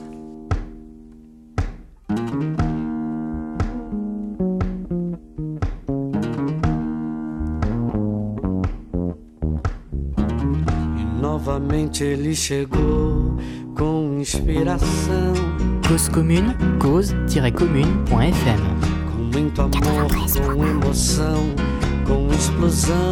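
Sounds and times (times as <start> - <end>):
Brazilian song with plucked chords and bass line: 0.0 - 11.0
speech: 11.5 - 23.1.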